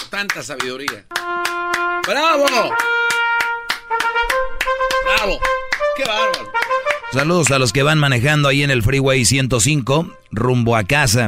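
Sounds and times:
sharp hand claps: 0:00.0 - 0:07.7
speech: 0:00.1 - 0:03.0, 0:05.1 - 0:11.2.

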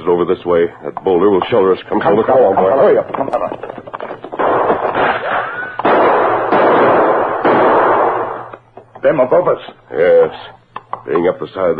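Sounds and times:
speech: 0:00.2 - 0:03.7, 0:09.0 - 0:11.7
gunshots exchanged in a canyon: 0:03.6 - 0:08.6.

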